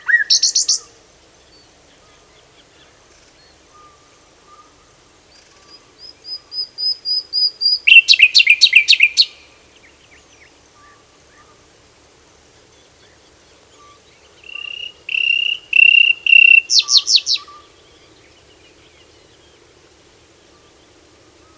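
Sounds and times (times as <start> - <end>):
common nightingale singing: 0.0 - 11.6, 12.8 - 19.5.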